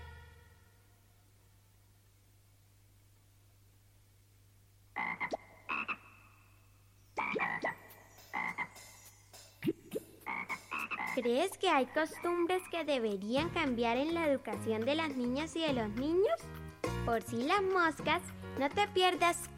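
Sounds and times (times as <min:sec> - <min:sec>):
low steady hum: 0:00.0 - 0:08.1
frog croaking: 0:04.9 - 0:12.9
speech: 0:11.2 - 0:19.5.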